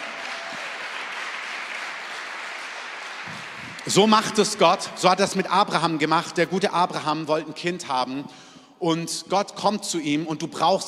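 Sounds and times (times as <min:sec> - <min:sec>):
audience applause: 0:00.0 - 0:04.2
speech: 0:03.3 - 0:10.8.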